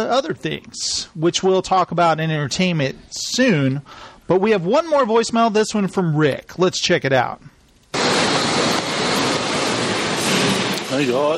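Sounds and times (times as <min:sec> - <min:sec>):
speech: 0:00.0 - 0:08.2, 0:11.0 - 0:11.3
train station ambience in Dubai: 0:07.9 - 0:11.3.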